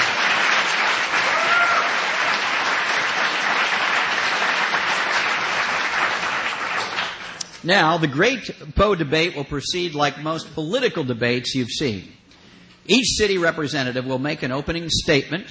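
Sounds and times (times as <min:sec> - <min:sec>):
audience applause: 0:00.0 - 0:07.4
speech: 0:07.6 - 0:12.2, 0:12.8 - 0:15.5.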